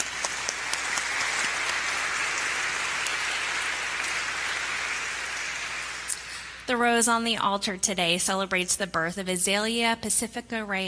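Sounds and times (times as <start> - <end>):
audience applause: 0.0 - 6.7
speech: 6.7 - 10.8.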